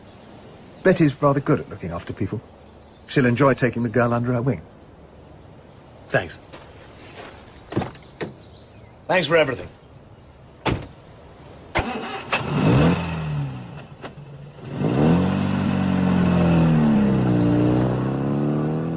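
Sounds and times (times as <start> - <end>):
speech: 0.8 - 4.8, 6.1 - 6.6, 9.1 - 9.8
car starting and driving away: 11.7 - 18.9.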